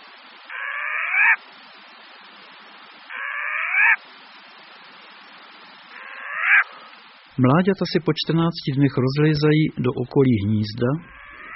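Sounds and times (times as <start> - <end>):
background hiss: 0.0 - 11.5
short-eared owl giving raspy squeals: 0.5 - 1.4, 3.1 - 4.0, 5.9 - 7.0, 11.0 - 11.5
speech: 1.3 - 1.8, 7.4 - 11.5.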